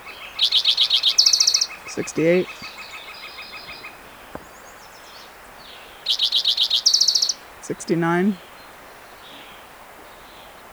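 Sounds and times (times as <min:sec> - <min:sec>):
speech: 0:00.4 - 0:00.7, 0:02.0 - 0:02.7, 0:07.7 - 0:08.5
spotted towhee singing: 0:00.4 - 0:02.8, 0:07.2 - 0:08.5.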